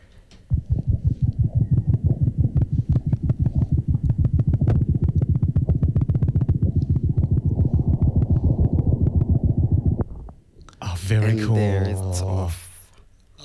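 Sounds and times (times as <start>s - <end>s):
faint hum: 0.0s - 13.4s
lapwing heartbeat recorded by artificial egg in its nest: 0.4s - 10.6s.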